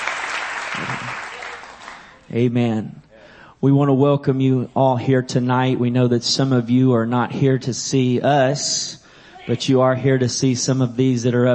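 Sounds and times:
audience applause: 0.0s - 2.2s
speech: 2.3s - 3.0s, 3.6s - 11.5s.

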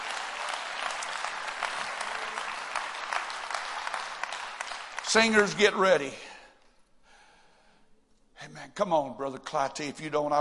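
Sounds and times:
audience clapping hands: 0.0s - 6.1s
speech: 5.1s - 6.2s, 8.8s - 10.3s.

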